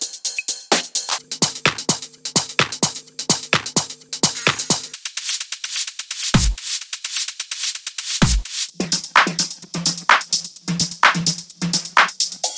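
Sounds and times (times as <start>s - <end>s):
techno top loops: 0.4s - 5.0s, 6.3s - 6.6s, 8.2s - 12.4s.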